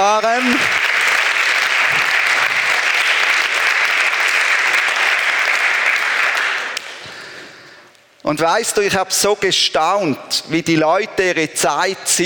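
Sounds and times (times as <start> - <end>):
audience applause: 0.0 - 7.0
speech: 0.1 - 0.8, 8.2 - 12.2.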